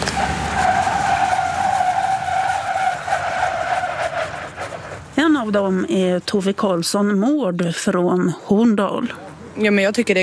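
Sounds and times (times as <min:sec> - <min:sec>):
car tires squealing while braking on ice: 0:00.0 - 0:05.1
road noise: 0:00.0 - 0:10.2
speech: 0:05.4 - 0:10.2.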